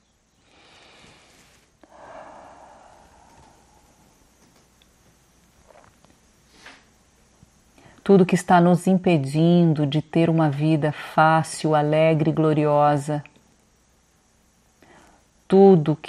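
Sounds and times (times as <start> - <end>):
deep inhalation through the nose during guided meditation: 0.4 - 4.4
faint rustles: 0.6 - 7.0
speech: 8.1 - 13.3, 15.5 - 16.0.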